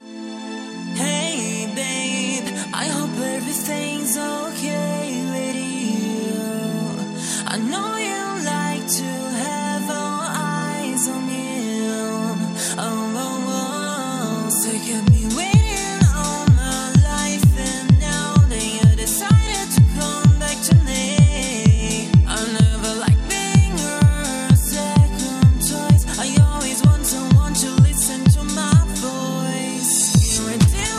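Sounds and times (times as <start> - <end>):
disco music tuned to 432 Hz: 1.0 - 30.9.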